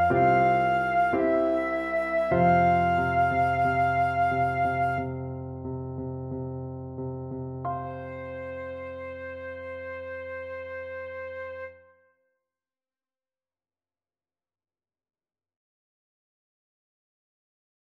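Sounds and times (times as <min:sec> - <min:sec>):
flute playing a pavane: 0:00.0 - 0:05.2, 0:07.9 - 0:11.9.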